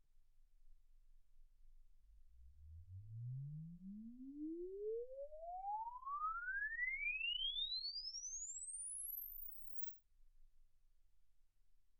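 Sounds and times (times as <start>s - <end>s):
exponential sine sweep from 10 Hz to 24 kHz: 2.6s - 9.9s.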